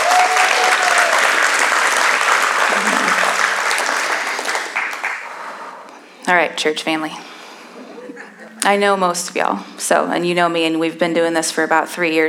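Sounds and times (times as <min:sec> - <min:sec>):
audience applause welcoming a speaker at a church community night: 0:00.0 - 0:05.6
laughter: 0:02.6 - 0:04.5, 0:07.8 - 0:08.6
speech: 0:06.3 - 0:07.3, 0:08.6 - 0:12.2.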